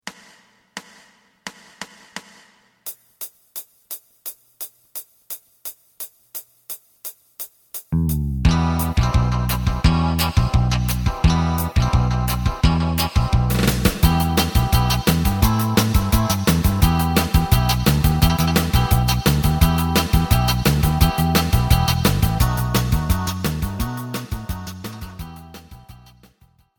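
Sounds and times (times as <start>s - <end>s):
lead melody: 8.0s - 26.2s.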